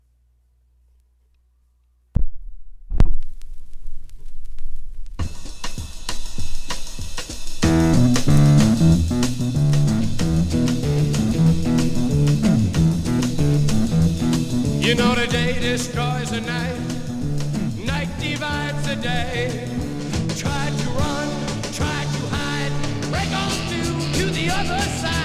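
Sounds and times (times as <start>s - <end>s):
rock song played on radio: 5.2s - 25.2s
bass and organ: 7.5s - 25.2s
speech: 14.9s - 16.7s.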